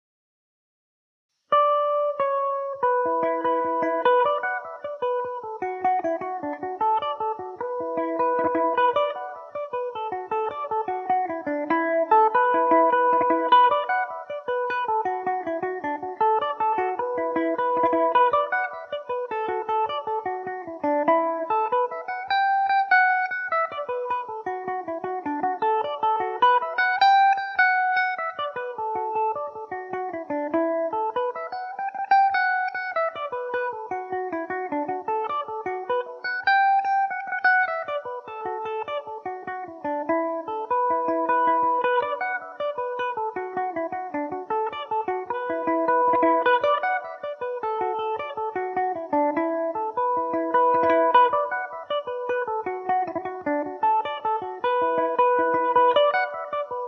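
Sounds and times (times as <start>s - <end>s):
Irish mandolin melody in E dorian: 1.6s - 56.8s.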